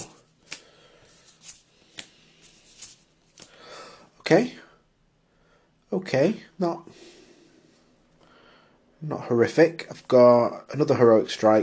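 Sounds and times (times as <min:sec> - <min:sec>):
cards rustling: 0:00.0 - 0:03.6
cards being drawn in a tabletop card game: 0:00.4 - 0:03.6
speech: 0:04.3 - 0:04.6, 0:06.0 - 0:07.1, 0:09.0 - 0:11.6.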